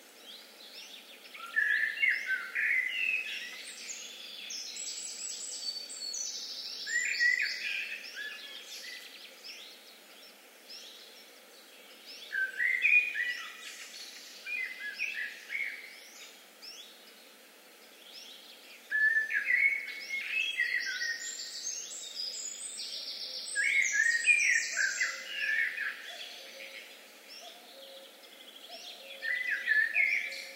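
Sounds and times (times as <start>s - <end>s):
Eurasian blackbird fluting warbled song: 0.7s - 9.7s, 11.9s - 17.0s, 18.0s - 30.5s.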